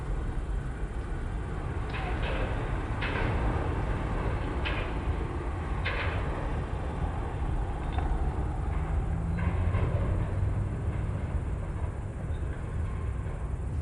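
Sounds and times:
night crickets in background: 0:00.0 - 0:13.7
port cranes unloading cargo at night: 0:00.0 - 0:13.7.

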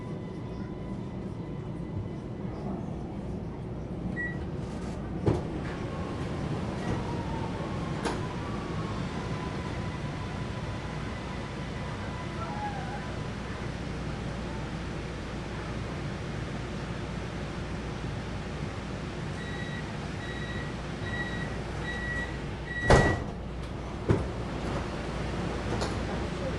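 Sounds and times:
subway ride interior in Vienna Austria by day: 0:00.0 - 0:26.5.

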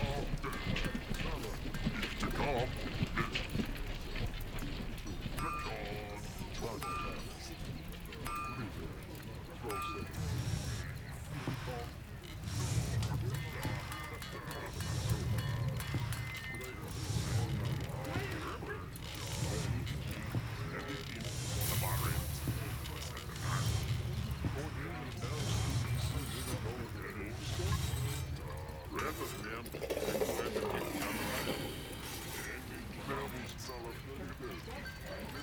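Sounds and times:
orc camp desert ambience: 0:00.0 - 0:35.4.

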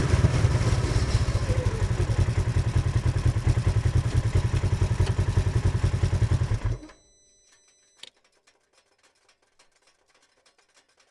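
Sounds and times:
Polaris RZR engine starting, driving, reversing and stopping, recorded onboard: 0:00.0 - 0:07.0.

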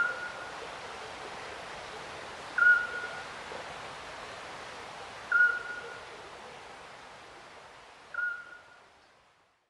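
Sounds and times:
distant little owl calling at night: 0:00.0 - 0:01.2, 0:02.6 - 0:03.4, 0:05.3 - 0:06.3, 0:08.1 - 0:08.8
river flowing at night: 0:00.0 - 0:09.6.

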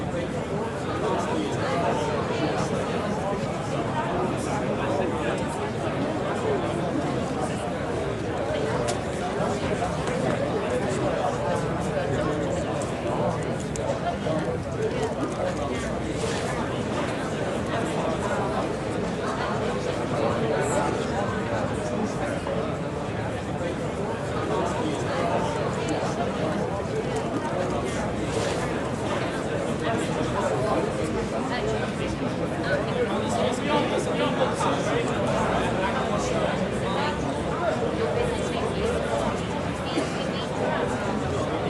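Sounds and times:
crowd with British accents in a Manchester pub beer garden: 0:00.0 - 0:41.6.

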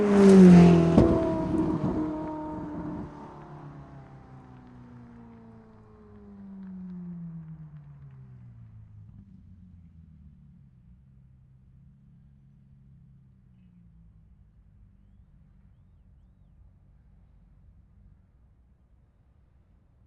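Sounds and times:
Ferrari 458 passing fast outside: 0:00.0 - 0:08.6.

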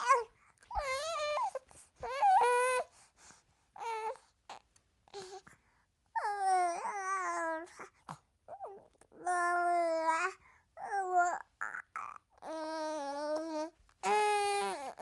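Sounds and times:
five-month-old baby babbling: 0:00.0 - 0:02.9, 0:06.2 - 0:15.0
five-month-old baby whining: 0:00.0 - 0:02.9, 0:03.8 - 0:05.5, 0:06.2 - 0:15.0.

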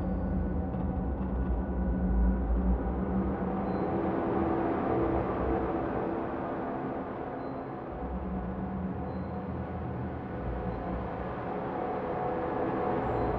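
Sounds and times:
dark ambience loop: 0:00.0 - 0:13.3.

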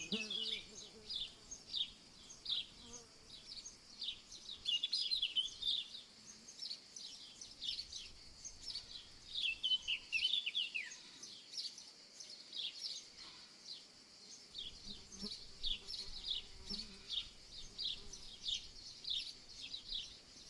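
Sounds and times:
bees in summer fields: 0:00.0 - 0:00.9
cicadas in summer fields: 0:00.0 - 0:20.4
insects in summer fields: 0:00.0 - 0:20.4
little birds in summer fields in the morning: 0:00.0 - 0:20.4.

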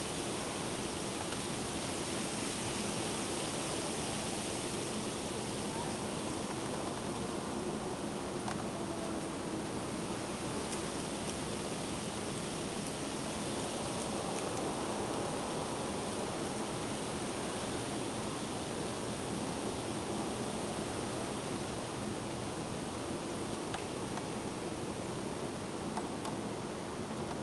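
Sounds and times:
strong wind in a city street: 0:00.0 - 0:27.4.

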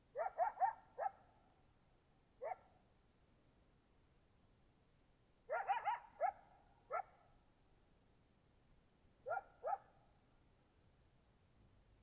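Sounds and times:
coyotes yipping: 0:00.1 - 0:01.2, 0:05.5 - 0:07.1, 0:09.3 - 0:09.9.

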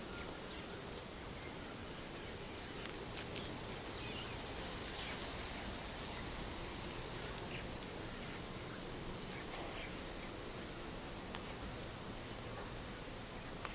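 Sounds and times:
birds in a small town backyard in daytime: 0:00.0 - 0:13.7
distant traffic in a small town: 0:00.0 - 0:13.7
leaves rustling in wind: 0:00.0 - 0:13.7.

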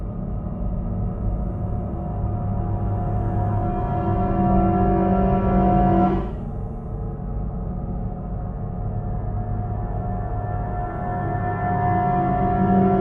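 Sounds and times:
tense upright piano drone: 0:00.0 - 0:12.9.

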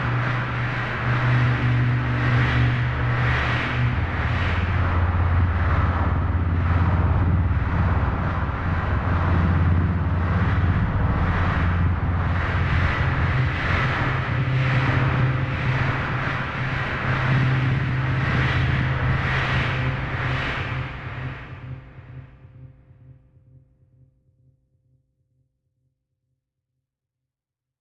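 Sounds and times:
galactic wind: 0:00.0 - 0:21.9.

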